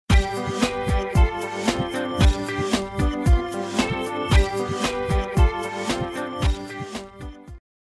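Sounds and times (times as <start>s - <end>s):
ringtone: 0.1s - 7.6s.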